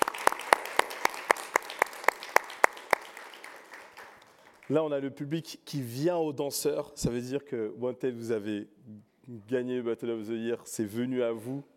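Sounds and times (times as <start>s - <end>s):
audience applause: 0.0s - 4.7s
speech: 4.7s - 11.7s.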